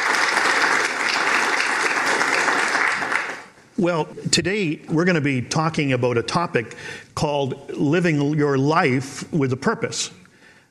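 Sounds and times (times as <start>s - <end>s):
crowd applause: 0.0s - 3.6s
speech: 3.8s - 10.2s.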